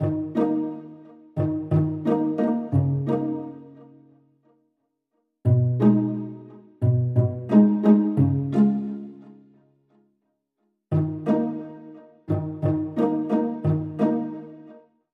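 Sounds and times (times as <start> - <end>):
background strings: 0.0 - 4.1, 5.5 - 9.6, 10.9 - 14.8.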